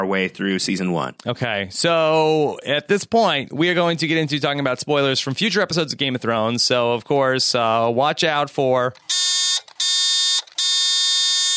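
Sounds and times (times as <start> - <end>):
speech: 0.1 - 9.3
harsh electronic buzzer blasts: 9.1 - 11.5.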